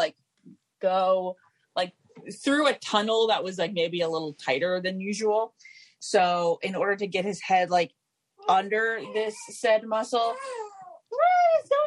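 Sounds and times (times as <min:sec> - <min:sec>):
speech: 0:00.8 - 0:11.8
newborn infant fussing: 0:08.4 - 0:11.8.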